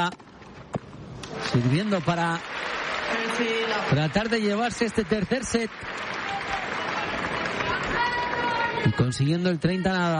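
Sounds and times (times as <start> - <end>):
speech: 0.0 - 0.3, 1.3 - 6.2, 8.8 - 10.1
tennis crowd applause during a match: 1.4 - 9.1.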